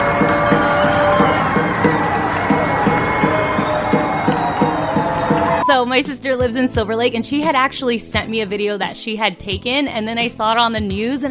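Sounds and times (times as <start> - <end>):
people in Silver Lake screaming: 0.0 - 5.8
speech: 5.7 - 11.2.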